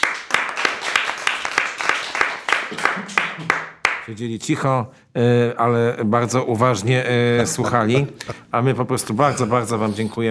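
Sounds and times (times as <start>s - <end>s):
audience applause: 0.0s - 4.0s
speech: 4.1s - 10.3s.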